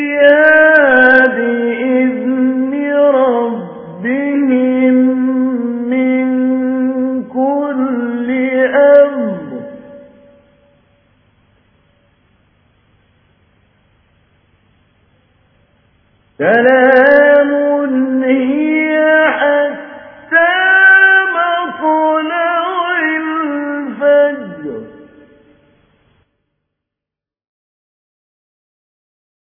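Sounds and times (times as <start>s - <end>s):
mujawwad Quran recitation: 0.0s - 10.4s, 16.4s - 25.2s.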